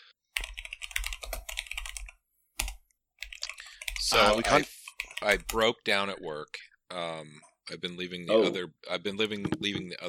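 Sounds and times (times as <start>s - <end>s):
fingers typing on a computer keyboard: 0.4s - 4.1s
speech: 4.1s - 10.0s.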